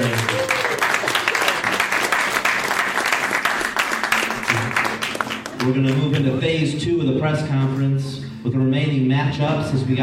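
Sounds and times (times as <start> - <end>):
audience applause: 0.0 - 6.4
speech: 5.6 - 10.0.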